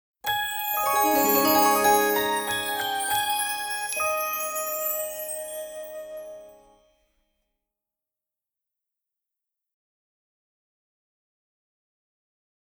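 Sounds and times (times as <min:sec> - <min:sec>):
magic music: 0:00.5 - 0:06.7.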